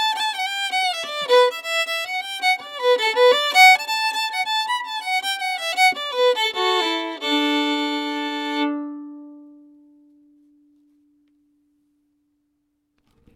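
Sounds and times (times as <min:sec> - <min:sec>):
fiddle: 0:00.0 - 0:09.8.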